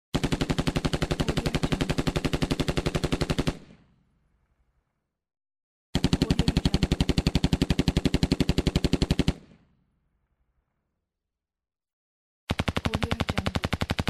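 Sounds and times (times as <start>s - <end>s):
machine gun firing: 0.2s - 3.8s, 6.0s - 9.6s, 12.5s - 14.0s.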